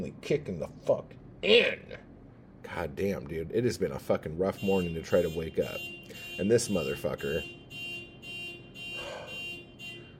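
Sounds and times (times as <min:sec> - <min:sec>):
speech: 0:00.0 - 0:02.1, 0:02.7 - 0:07.6
car alarm triggered by opening locked car: 0:04.4 - 0:10.1.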